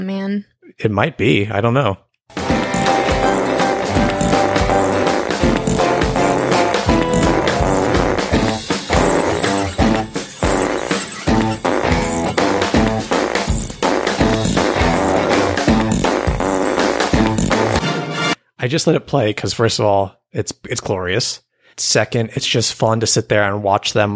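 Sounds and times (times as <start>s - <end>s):
speech: 0.0s - 2.5s, 18.6s - 24.1s
loud dense rhythmic musical passage: 2.3s - 18.4s
stools squeaking as people spin on them: 2.5s - 12.5s.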